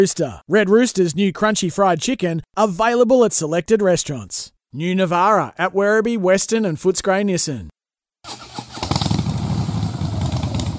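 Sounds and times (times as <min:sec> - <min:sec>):
speech: 0:00.0 - 0:07.8
motorcycle engine revving: 0:08.3 - 0:10.7.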